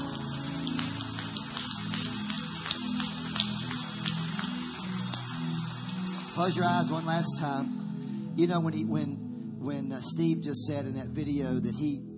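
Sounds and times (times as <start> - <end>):
audience applause: 0.0 - 6.9
speech: 6.4 - 7.8, 8.4 - 12.1.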